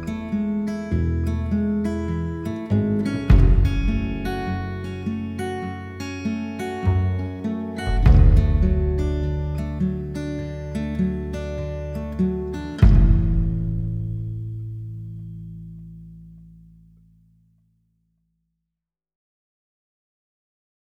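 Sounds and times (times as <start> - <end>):
instrumental music: 0.0 - 15.3.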